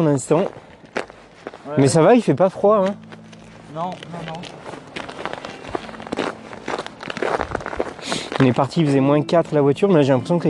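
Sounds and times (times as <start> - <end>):
speech: 0.0 - 0.7, 1.7 - 3.0, 3.7 - 4.7, 8.4 - 10.4
several people walking outdoors on rough ground: 0.0 - 9.7.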